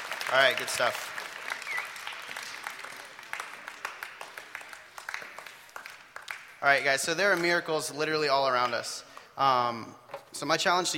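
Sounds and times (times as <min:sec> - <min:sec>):
crowd applauding: 0:00.0 - 0:06.6
speech: 0:00.3 - 0:01.2, 0:06.6 - 0:10.9.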